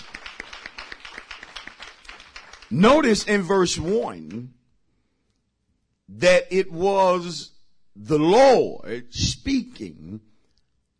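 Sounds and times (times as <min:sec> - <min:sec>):
audience clapping: 0:00.0 - 0:04.5
speech: 0:02.7 - 0:04.6, 0:06.1 - 0:10.3.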